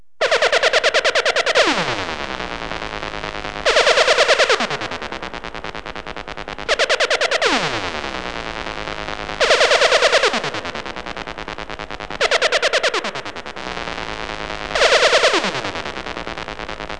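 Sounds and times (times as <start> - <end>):
sci-fi sound: 0.2 - 2.5, 3.6 - 5.9, 6.6 - 10.8, 12.2 - 15.8.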